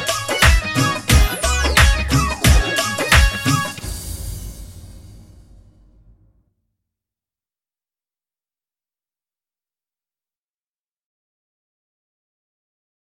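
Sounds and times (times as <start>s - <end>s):
instrumental music: 0.0s - 6.2s.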